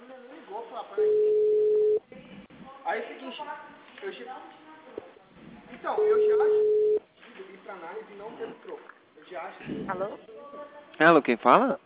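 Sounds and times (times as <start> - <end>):
speech: 0.6 - 1.5, 2.9 - 4.6, 5.8 - 6.8, 7.7 - 11.8
phone system signal tone before dialing an extension: 1.0 - 2.0, 6.0 - 7.0.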